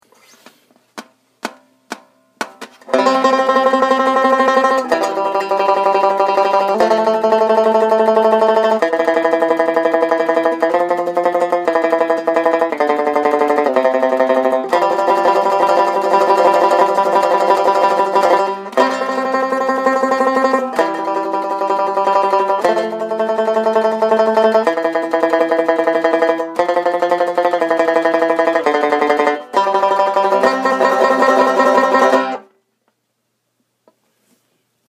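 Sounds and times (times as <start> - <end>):
banjo tremolo: 1.4 - 32.5.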